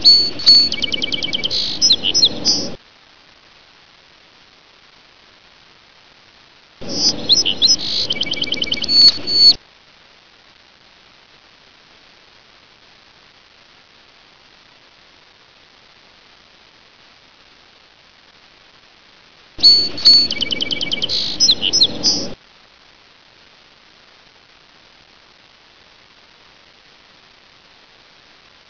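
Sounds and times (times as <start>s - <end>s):
bird: 0.0s - 2.8s, 6.8s - 9.6s, 19.6s - 22.4s.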